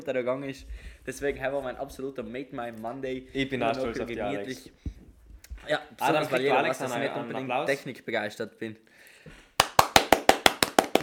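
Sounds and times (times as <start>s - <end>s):
speech: 0.0s - 5.0s, 5.6s - 9.4s
clapping: 9.6s - 11.0s.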